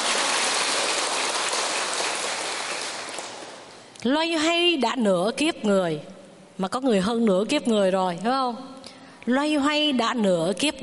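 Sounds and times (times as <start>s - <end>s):
audience applause: 0.0s - 3.8s
speech: 4.0s - 10.8s.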